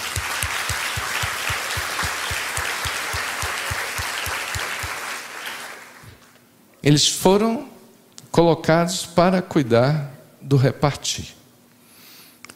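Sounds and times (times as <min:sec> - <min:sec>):
audience applause: 0:00.0 - 0:06.2
speech: 0:06.8 - 0:07.8, 0:08.4 - 0:11.4.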